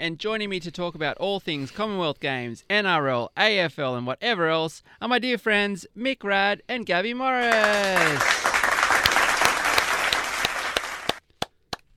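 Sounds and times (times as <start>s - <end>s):
speech: 0.0s - 8.6s
people clapping: 7.4s - 11.9s.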